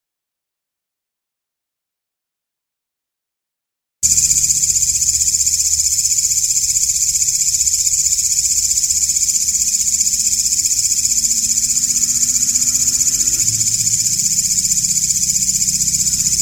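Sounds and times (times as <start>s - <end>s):
katydid buzzing call: 4.0s - 16.3s.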